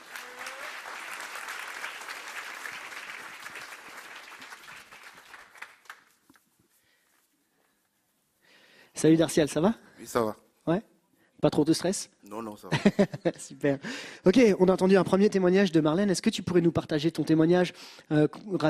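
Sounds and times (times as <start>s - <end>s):
audience applause: 0.0s - 6.1s
speech: 9.0s - 18.6s
laughter: 12.6s - 13.6s.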